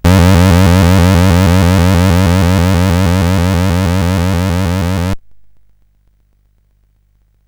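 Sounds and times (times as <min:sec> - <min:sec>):
SID CSG8580R5 chip music: 0:00.0 - 0:05.2.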